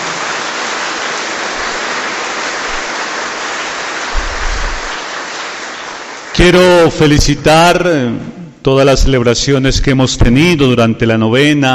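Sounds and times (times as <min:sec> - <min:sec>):
crowd applause: 0:00.0 - 0:06.9
speech: 0:06.4 - 0:11.7.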